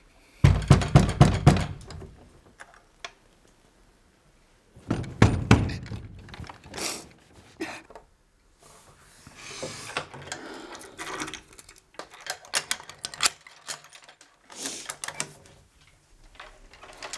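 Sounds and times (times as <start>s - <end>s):
knocking thuds on a door being handled: 0.4s - 2.1s, 4.8s - 6.4s.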